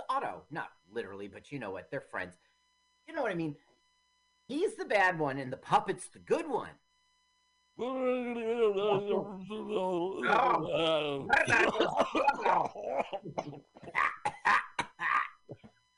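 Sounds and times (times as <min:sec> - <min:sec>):
speech: 0:00.2 - 0:02.5, 0:03.1 - 0:03.7, 0:04.5 - 0:06.8, 0:07.8 - 0:14.6
laughter: 0:08.5 - 0:15.6
person coughing from smoking a cigarette: 0:11.3 - 0:15.7.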